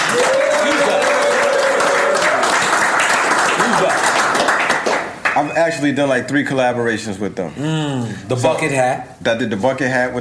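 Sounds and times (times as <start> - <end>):
crowd applauding and cheering: 0.0 - 5.4
speech: 5.6 - 10.2.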